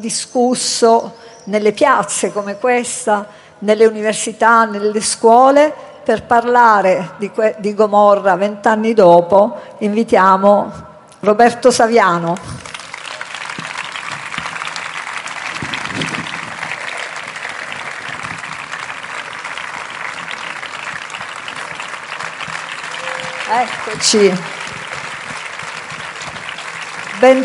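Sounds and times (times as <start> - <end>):
speech: 0.0 - 12.6, 23.9 - 24.6, 27.2 - 27.4
audience applause for a guest: 12.6 - 27.4.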